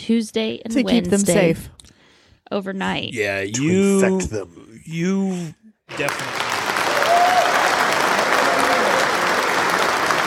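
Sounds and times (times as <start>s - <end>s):
speech: 0.0s - 1.8s, 2.5s - 6.6s
crowd applauding: 5.9s - 10.2s.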